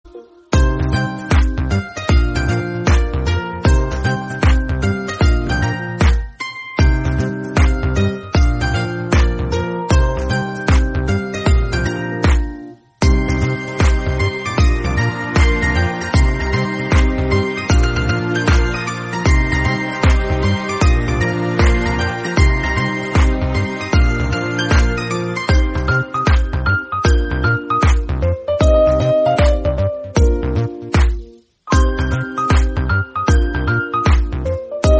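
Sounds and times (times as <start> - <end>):
instrumental background music ringtone: 0.0 - 34.9.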